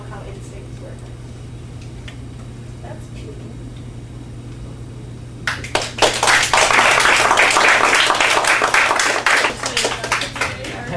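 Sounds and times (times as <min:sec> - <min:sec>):
room full of people applauding: 0:05.4 - 0:10.9.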